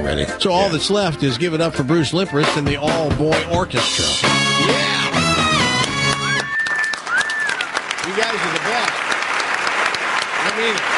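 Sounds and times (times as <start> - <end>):
speech: 0.0 - 4.8, 8.2 - 8.9, 10.6 - 10.9
audience applause: 5.5 - 10.9.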